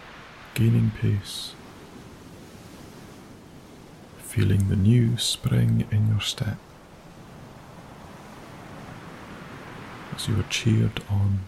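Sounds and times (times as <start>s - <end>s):
ocean waves crashing as surf: 0.0s - 11.4s
speech: 0.6s - 1.6s, 4.4s - 6.7s, 10.2s - 11.4s.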